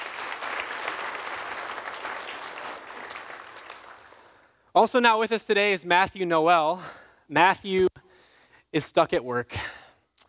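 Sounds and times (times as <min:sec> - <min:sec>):
audience applause: 0:00.0 - 0:04.4
speech: 0:04.8 - 0:07.9, 0:08.7 - 0:09.8.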